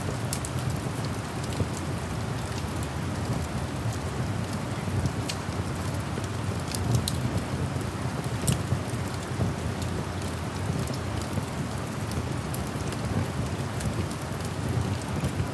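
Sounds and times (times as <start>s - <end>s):
campfire crackling and popping: 0.0s - 15.5s
rain falling at night: 0.0s - 15.5s.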